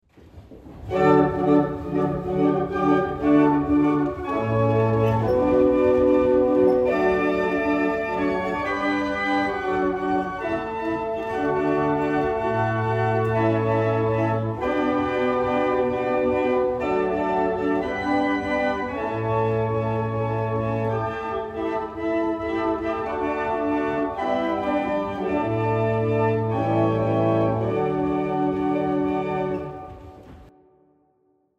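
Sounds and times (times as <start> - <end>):
barrel organ playing a double chant: 0.8 - 30.0.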